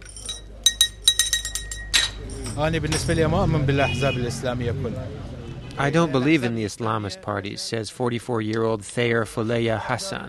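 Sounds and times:
glasses clinking in a tea shop in Bakuba, north of Baghdad: 0.0s - 3.3s
speech: 2.6s - 10.2s.

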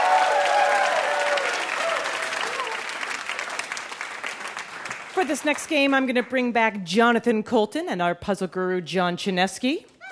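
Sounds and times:
faint voices and cheers: 0.0s - 2.9s
audience clapping: 0.0s - 6.5s
speech: 5.2s - 9.9s.

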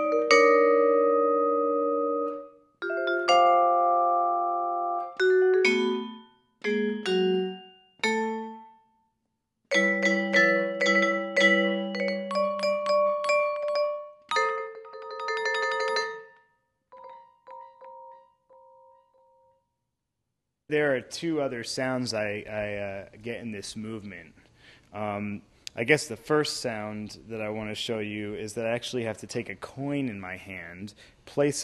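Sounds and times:
vibraphone played with the sustain pedal: 0.0s - 8.9s, 9.7s - 19.6s
speech: 21.0s - 31.6s.

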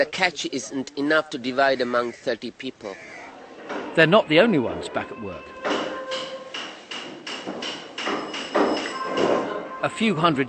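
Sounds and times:
speech: 0.0s - 3.1s, 4.0s - 5.8s, 9.8s - 10.4s
workmen hammering: 3.4s - 9.8s.

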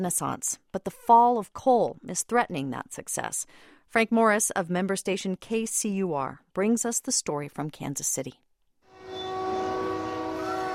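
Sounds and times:
speech: 0.0s - 8.4s
train horn blaring at Santa Fe Junction in Kansas City: 8.9s - 10.7s.

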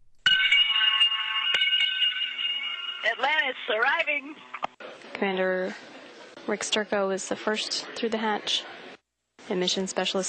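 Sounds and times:
bell rung to greet arriving crew on the International Space Station: 0.3s - 4.6s
speech: 3.0s - 4.6s, 5.2s - 8.9s, 9.5s - 10.2s.

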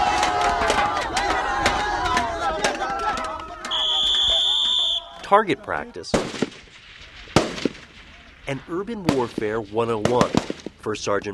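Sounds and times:
crowd-control training drill shouting: 0.0s - 5.9s
shrill whistle tone: 3.7s - 5.2s
speech: 5.3s - 6.5s, 8.5s - 11.3s.

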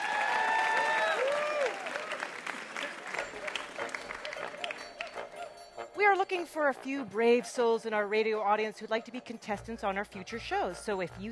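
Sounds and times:
audience applauding the contestants of a puzzle quiz show: 0.0s - 5.4s
speech: 6.1s - 11.3s.

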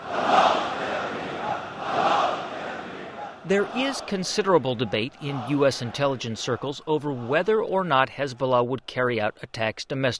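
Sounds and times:
rally crowd chanting: 0.0s - 7.7s
speech: 3.5s - 10.1s.

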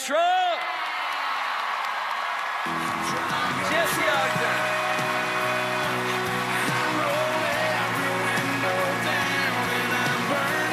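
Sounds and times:
speech: 0.0s - 0.4s
awards show crowd cheering and whooping: 0.0s - 10.7s.

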